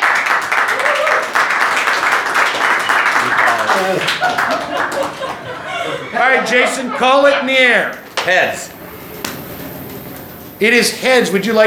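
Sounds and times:
live audience at a satire debate night applauding to welcome two debaters: 0.0 - 5.9
laughter: 3.0 - 7.7
speech: 3.8 - 5.1, 6.2 - 8.7, 10.6 - 11.6.

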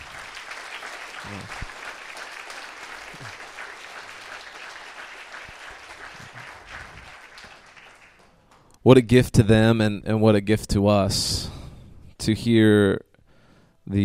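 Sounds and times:
audience applause: 0.0 - 8.5
speech: 1.3 - 1.7, 8.8 - 11.6, 12.2 - 13.1, 13.9 - 14.0.

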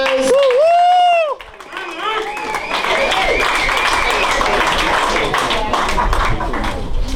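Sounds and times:
audience applause: 0.0 - 7.0
crowd whooping and cheering: 0.0 - 7.0
high whistle: 2.3 - 4.2.

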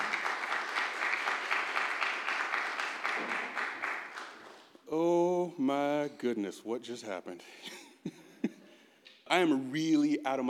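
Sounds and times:
audience applause welcoming a speaker: 0.0 - 4.6
speech: 5.7 - 8.2, 9.3 - 10.4.

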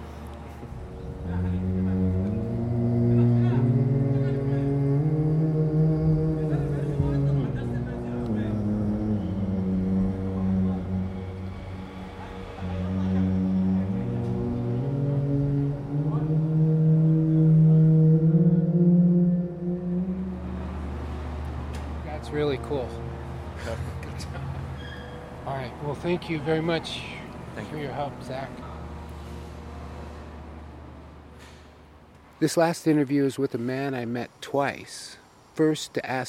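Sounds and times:
steady droning tone: 0.6 - 31.3
voice pitched down to sound like a cello: 0.7 - 24.6
speech: 26.0 - 27.1, 27.7 - 28.7, 32.4 - 36.2.

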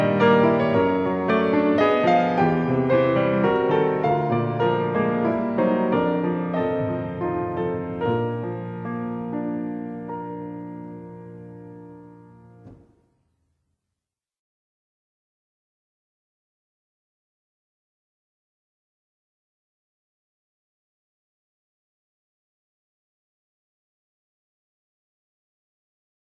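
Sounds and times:
ballet music for a ballotté: 0.0 - 12.9.

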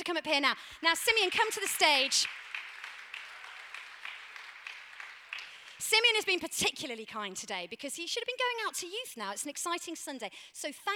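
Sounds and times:
speech: 0.0 - 2.6, 5.8 - 10.9
round of applause: 1.0 - 5.8.

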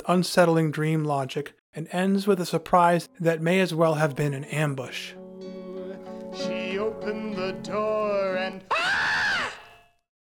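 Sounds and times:
speech: 0.0 - 5.2, 6.3 - 9.0
loud jagged scream: 8.7 - 9.8.

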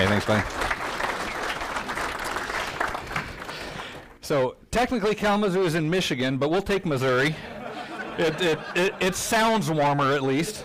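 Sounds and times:
audience applause at a men's conference breakout session: 0.0 - 4.2
speech: 0.2 - 0.8, 4.3 - 7.5, 8.2 - 10.6
laughter: 7.2 - 10.6.

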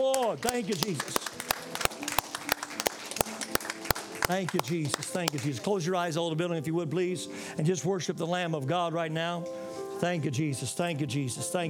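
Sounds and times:
speech: 0.0 - 1.4, 4.3 - 11.6
audience applause: 0.0 - 5.6.

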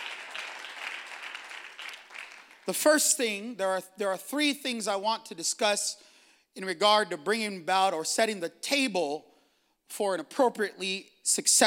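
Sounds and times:
crowd applauding: 0.0 - 2.8
speech: 2.6 - 6.0, 6.6 - 9.3, 9.9 - 11.6.

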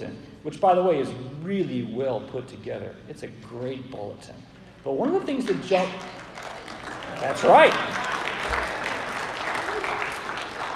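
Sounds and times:
speech: 0.0 - 6.2, 7.2 - 8.1
audience applause: 6.0 - 10.7.

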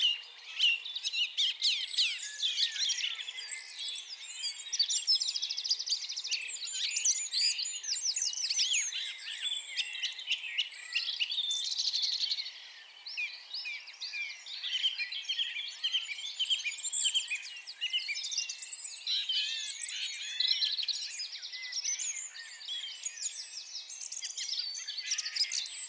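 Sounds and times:
birdsong: 0.0 - 25.8.

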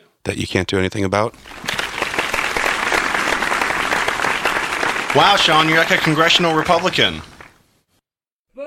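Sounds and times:
speech: 0.3 - 1.8, 5.2 - 7.3
clapping: 1.4 - 7.6.

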